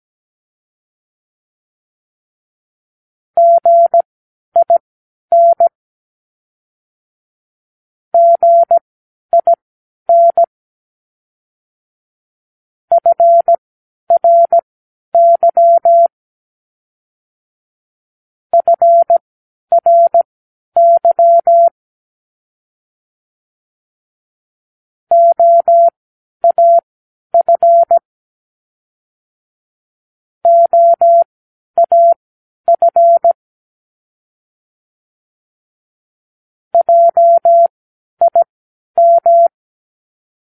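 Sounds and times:
morse code practice words: 0:03.4 - 0:04.0, 0:04.6 - 0:05.7, 0:08.2 - 0:08.8, 0:09.4 - 0:10.5, 0:12.9 - 0:13.6, 0:14.2 - 0:14.6, 0:15.2 - 0:16.1, 0:18.6 - 0:19.2, 0:19.8 - 0:21.7, 0:25.1 - 0:26.8, 0:27.4 - 0:28.0, 0:30.4 - 0:33.4, 0:36.8 - 0:39.6.

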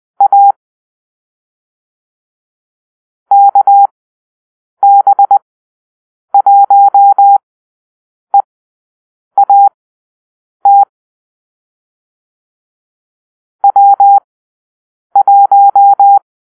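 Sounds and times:
morse code call-sign drill: 0:00.2 - 0:00.6, 0:03.3 - 0:03.9, 0:04.8 - 0:05.4, 0:06.4 - 0:07.4, 0:09.4 - 0:09.7, 0:10.7 - 0:10.9, 0:13.6 - 0:14.2, 0:15.2 - 0:16.2.

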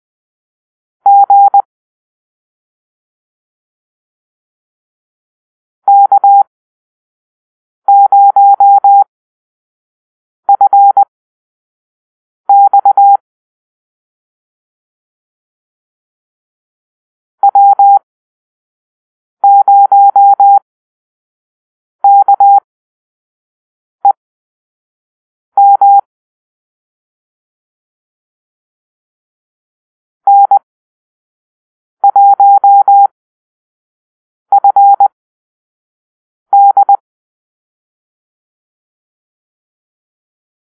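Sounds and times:
morse code call-sign beeps: 0:01.1 - 0:01.6, 0:05.9 - 0:06.5, 0:07.9 - 0:09.1, 0:10.5 - 0:11.0, 0:12.5 - 0:13.2, 0:17.4 - 0:18.0, 0:19.4 - 0:20.6, 0:22.0 - 0:22.6, 0:25.6 - 0:26.1, 0:30.3 - 0:30.6, 0:32.1 - 0:33.1, 0:34.5 - 0:35.1, 0:36.5 - 0:37.0.

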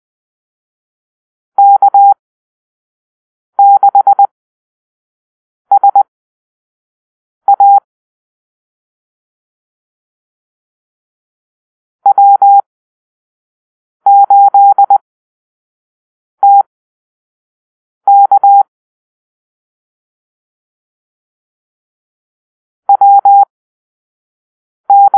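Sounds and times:
morse code beeps in a call-sign drill: 0:01.6 - 0:02.2, 0:03.6 - 0:04.3, 0:05.7 - 0:06.0, 0:07.5 - 0:07.8, 0:12.1 - 0:12.6, 0:14.1 - 0:15.0, 0:16.4 - 0:16.6, 0:18.1 - 0:18.7, 0:22.9 - 0:23.5, 0:24.9 - 0:25.1.

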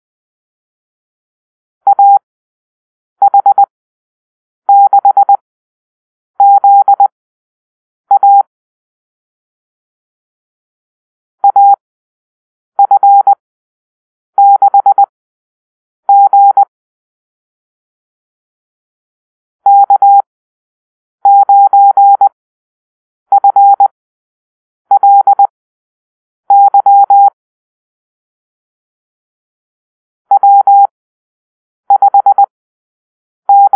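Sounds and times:
morse code call-sign drill: 0:01.9 - 0:02.2, 0:03.2 - 0:03.7, 0:04.7 - 0:05.4, 0:06.4 - 0:07.1, 0:08.1 - 0:08.5, 0:11.4 - 0:11.8, 0:12.8 - 0:13.4, 0:14.4 - 0:15.1, 0:16.1 - 0:16.7, 0:19.7 - 0:20.3, 0:21.3 - 0:22.4, 0:23.3 - 0:23.9, 0:25.0 - 0:25.5, 0:26.5 - 0:27.4, 0:30.3 - 0:30.9, 0:31.9 - 0:32.5, 0:33.5 - 0:33.7.

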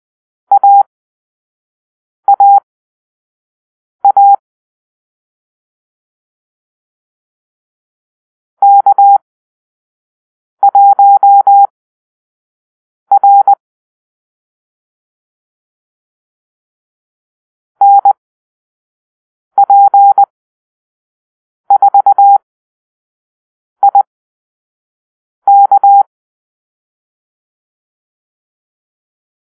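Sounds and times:
morse code call-sign beeps: 0:00.5 - 0:00.9, 0:02.3 - 0:02.6, 0:04.0 - 0:04.4, 0:08.6 - 0:09.2, 0:10.6 - 0:11.7, 0:13.1 - 0:13.6, 0:17.8 - 0:18.2, 0:19.6 - 0:20.3, 0:21.7 - 0:22.4, 0:23.8 - 0:24.1, 0:25.5 - 0:26.1.

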